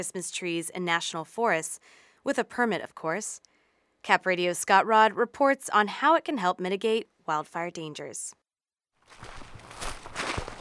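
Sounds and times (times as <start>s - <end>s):
speech: 0.0s - 8.4s
hiker's crunchy footsteps among tall pine trees in El Dorado National Forest: 9.0s - 10.5s.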